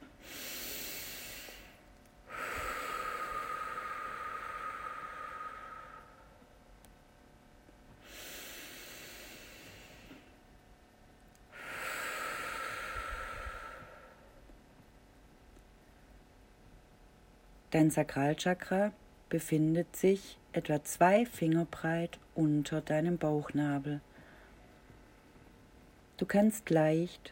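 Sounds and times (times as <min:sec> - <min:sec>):
deep breathing during a sacral chakra meditation: 0:00.0 - 0:06.5, 0:08.0 - 0:10.4, 0:11.5 - 0:14.5, 0:24.1 - 0:25.4
speech: 0:17.7 - 0:24.1, 0:26.2 - 0:27.3.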